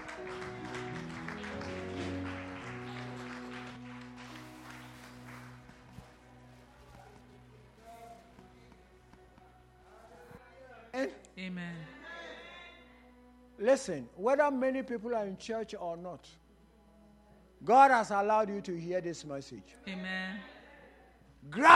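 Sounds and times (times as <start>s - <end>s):
audience clapping: 0.0s - 7.5s
speech: 11.0s - 11.9s, 13.6s - 16.4s, 17.6s - 20.5s, 21.4s - 21.7s.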